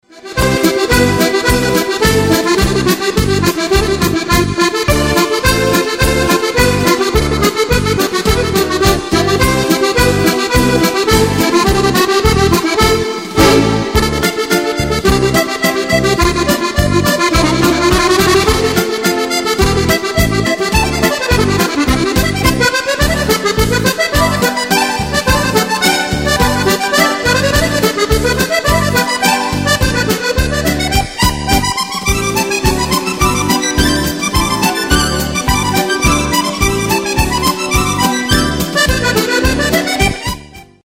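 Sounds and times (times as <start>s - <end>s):
musette polka music: 0.0s - 40.8s.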